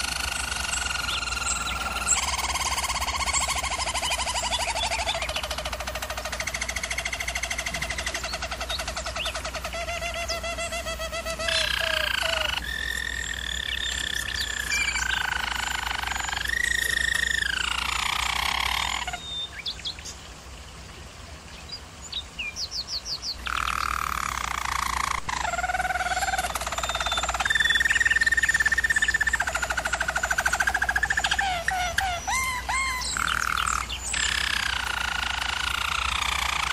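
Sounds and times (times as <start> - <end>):
bird trilling: 0.0 - 19.7, 23.4 - 36.7
steady low hum: 0.0 - 36.7.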